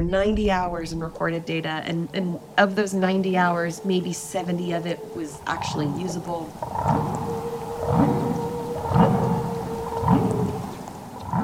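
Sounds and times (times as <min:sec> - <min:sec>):
speech: 0:00.0 - 0:07.3
whale vocalization: 0:02.6 - 0:11.4.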